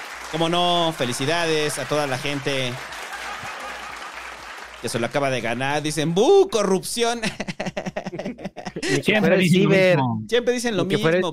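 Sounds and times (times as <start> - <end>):
applause: 0.0 - 6.7
speech: 0.3 - 2.9, 4.8 - 11.3
laughter: 7.1 - 9.8.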